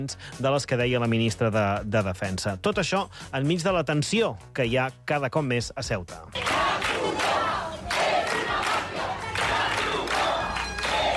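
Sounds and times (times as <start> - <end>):
speech: 0.0 - 6.9
crowd of protesters shouting slogans: 6.4 - 11.1.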